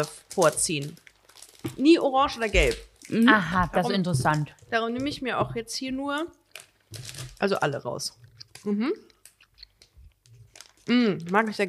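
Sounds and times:
speech: 0:00.0 - 0:01.0, 0:01.6 - 0:09.1, 0:10.9 - 0:11.6
chewing Haribo Rainbow Sauer sour gummy sweets: 0:00.0 - 0:11.6
person humming: 0:08.7 - 0:09.1.

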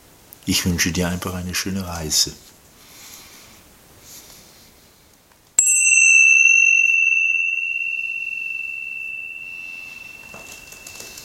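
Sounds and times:
speech: 0:00.5 - 0:02.5
Tibetan singing bowl struck to begin a meditation: 0:05.6 - 0:11.2.

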